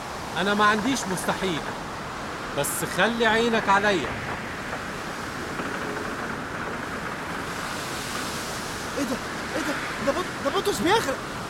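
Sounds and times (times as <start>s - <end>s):
high sea waves roaring: 0.0s - 11.4s
speech: 0.4s - 1.8s, 2.6s - 4.4s, 9.0s - 9.3s, 10.1s - 11.4s.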